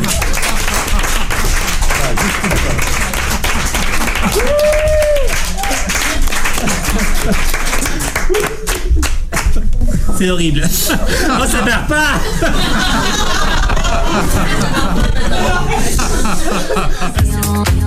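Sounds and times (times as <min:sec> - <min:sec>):
audience applause: 0:00.0 - 0:09.6, 0:11.9 - 0:17.1
laughter: 0:01.8 - 0:17.3
speech: 0:07.3 - 0:07.6, 0:10.2 - 0:17.8.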